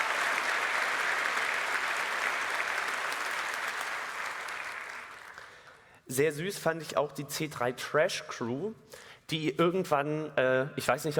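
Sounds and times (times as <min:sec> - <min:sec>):
audience applause: 0:00.0 - 0:05.6
speech: 0:06.1 - 0:11.1.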